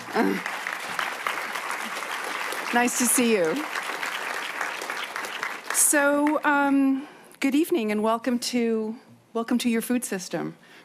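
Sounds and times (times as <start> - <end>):
audience applause for a film director at an evening screening: 0.0 - 6.5
speech: 0.2 - 0.6, 2.7 - 3.8, 5.9 - 10.8.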